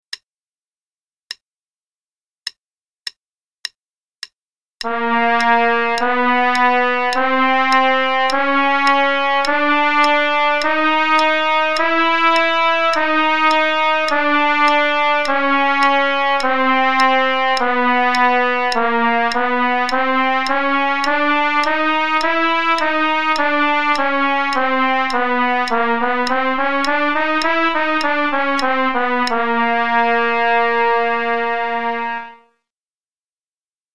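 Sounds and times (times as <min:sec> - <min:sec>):
chromatic play-along melody at 104 bpm: 0:04.8 - 0:32.5.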